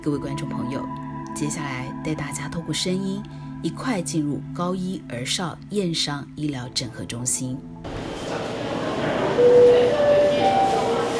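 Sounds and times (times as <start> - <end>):
speech: 0.0 - 8.0, 9.4 - 10.2
noisy hospital emergency room: 7.9 - 11.1.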